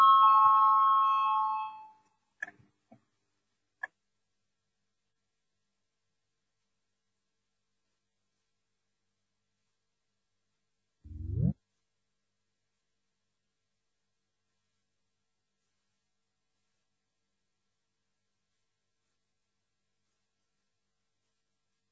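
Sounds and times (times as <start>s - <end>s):
electric bell ringing before a vote in the Latvian parliament: 0.0s - 2.0s.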